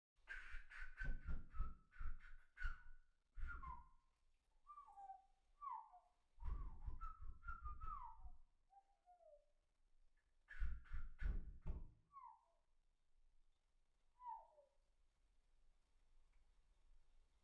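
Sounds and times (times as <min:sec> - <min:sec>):
bird: 0:00.2 - 0:04.0, 0:04.6 - 0:09.5, 0:10.2 - 0:12.7, 0:14.1 - 0:14.8.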